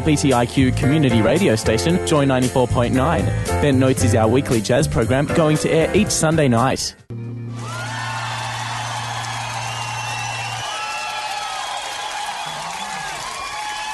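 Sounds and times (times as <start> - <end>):
speech: 0.0 - 7.1
studio audience applause: 7.5 - 13.9
studio audience cheers and whoops: 7.5 - 13.9.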